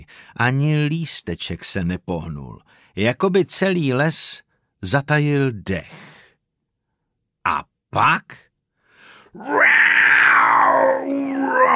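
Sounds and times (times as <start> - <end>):
speech: 0.0 - 6.2, 7.4 - 8.5, 9.3 - 10.0, 10.8 - 11.7
loud drawn-out war shriek: 9.4 - 11.7.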